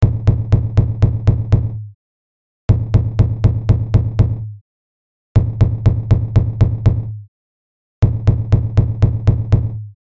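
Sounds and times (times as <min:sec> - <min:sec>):
drums: 0:00.0 - 0:01.8, 0:02.7 - 0:04.5, 0:05.4 - 0:07.2, 0:08.0 - 0:09.9.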